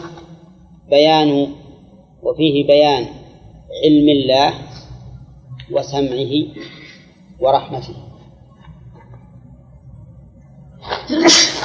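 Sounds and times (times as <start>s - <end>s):
speech: 0.9s - 1.6s, 2.2s - 4.8s, 5.7s - 6.8s, 7.4s - 8.1s, 11.1s - 11.6s
person sneezing: 10.9s - 11.6s.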